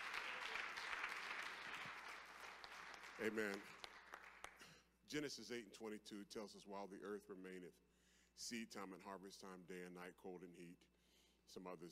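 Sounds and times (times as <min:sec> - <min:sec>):
audience hand clap of appreciation: 0:00.0 - 0:04.8
speech: 0:03.2 - 0:03.8, 0:05.1 - 0:11.9.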